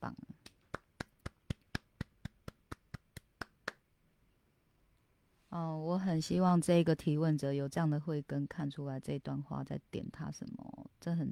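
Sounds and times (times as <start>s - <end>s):
hand clapping: 0.4s - 3.8s
speech: 5.5s - 11.3s.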